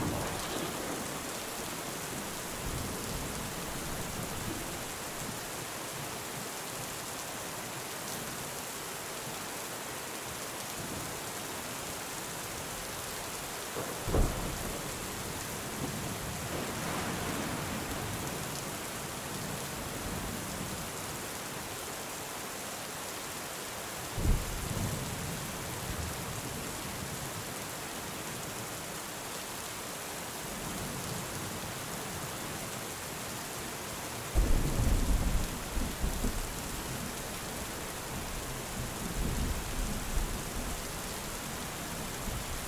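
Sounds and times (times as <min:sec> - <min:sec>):
thunder rumbling: 0:00.0 - 0:05.2, 0:34.4 - 0:40.8
steady gentle rain falling: 0:00.0 - 0:42.6.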